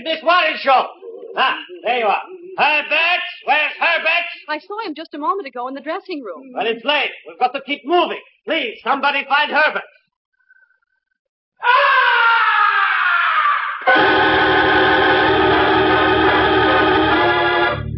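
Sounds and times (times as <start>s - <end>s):
speech: 0.2s - 10.0s
blood-curdling scream echoing in opera house: 11.6s - 17.8s.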